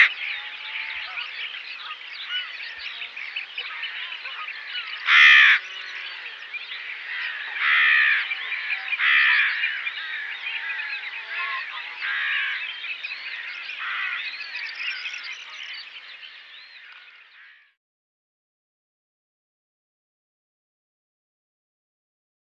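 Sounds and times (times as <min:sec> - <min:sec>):
rook cawing: 0:00.0 - 0:02.8, 0:03.6 - 0:15.2, 0:16.8 - 0:17.8
continuous babble of a busy rookery: 0:00.0 - 0:17.3.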